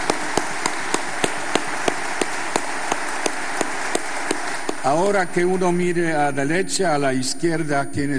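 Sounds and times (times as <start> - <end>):
audience applauding: 0.0 - 5.9
speech: 4.8 - 8.1.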